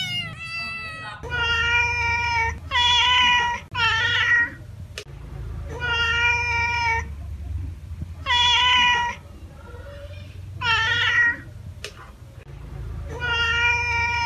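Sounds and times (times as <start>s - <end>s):
domestic cat giving drawn-out meows: 0.0s - 4.6s, 5.8s - 7.1s, 8.2s - 9.2s, 10.2s - 11.5s, 13.1s - 14.2s.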